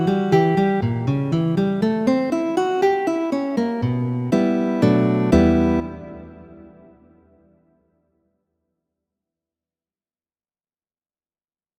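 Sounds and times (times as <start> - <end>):
guitar waltzes: 0.0 - 7.2.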